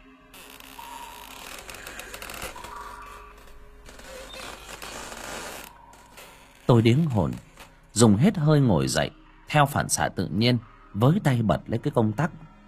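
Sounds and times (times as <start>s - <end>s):
wardrobe door creaking slowly open: 0.4s - 7.8s
speech: 6.7s - 12.5s.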